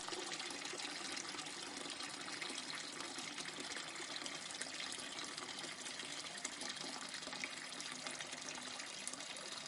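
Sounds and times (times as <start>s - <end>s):
tap water running into a kitchen sink: 0.0s - 9.6s.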